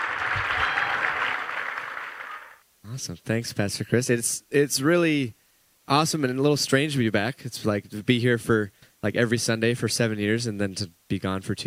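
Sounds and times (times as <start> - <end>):
church congregation applauding a couple's welcome home: 0.0 - 2.6
speech: 3.0 - 11.6.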